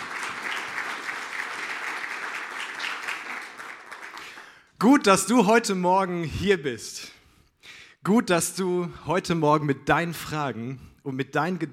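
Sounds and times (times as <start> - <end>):
audience applause: 0.0 - 4.6
speech: 4.8 - 7.2, 8.0 - 11.7.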